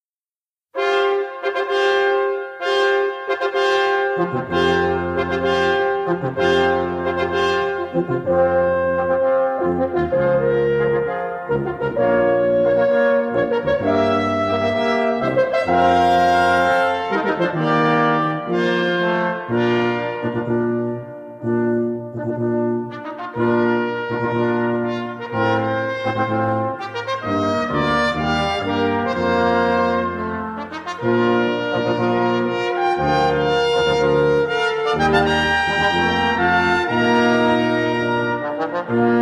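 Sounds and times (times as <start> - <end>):
brass quintet fanfare: 0.8 - 39.2.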